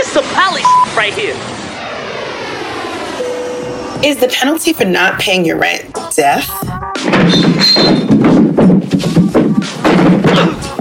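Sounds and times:
speech: 0.1 - 1.6, 4.0 - 8.2
person tumbling down a staircase in a comedy sketch: 7.0 - 10.7.

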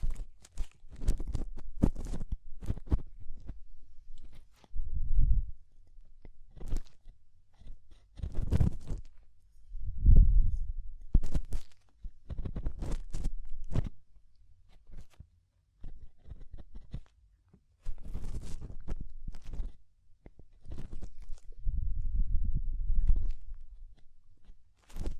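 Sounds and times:
crackly scratchy rubbing from ear cleaning: 0.0 - 17.2, 17.8 - 25.1
rumbling: 9.8 - 11.2, 21.6 - 23.8.

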